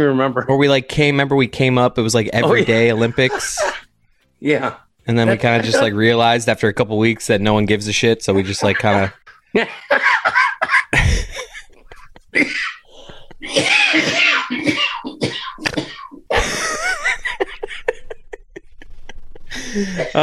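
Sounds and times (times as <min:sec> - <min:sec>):
speech: 0:00.0 - 0:03.8, 0:04.4 - 0:10.4, 0:12.4 - 0:12.7, 0:13.5 - 0:14.8, 0:19.8 - 0:20.2
several people laughing: 0:02.3 - 0:03.9, 0:05.2 - 0:06.1, 0:08.3 - 0:14.6, 0:16.3 - 0:20.2
harsh rapid coughing: 0:02.4 - 0:03.9, 0:05.3 - 0:06.0, 0:08.4 - 0:09.2, 0:10.0 - 0:17.6.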